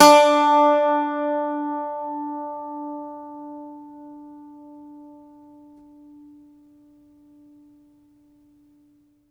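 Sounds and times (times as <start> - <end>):
Irish bouzouki plucked strings: 0.0 - 5.9.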